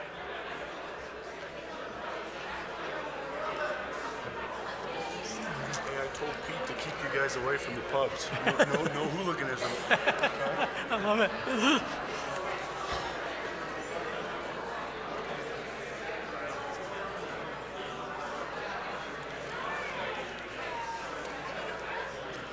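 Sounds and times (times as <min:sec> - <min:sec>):
rowdy crowd chatter: 0:00.0 - 0:22.5
crowd chuckles and laughter: 0:04.4 - 0:07.2, 0:08.0 - 0:13.4
speech: 0:07.2 - 0:12.1.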